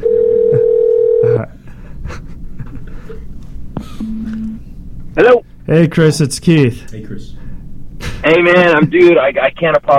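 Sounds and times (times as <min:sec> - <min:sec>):
telephone dial tone: 0:00.0 - 0:01.2
speech: 0:05.2 - 0:07.4, 0:08.3 - 0:09.9.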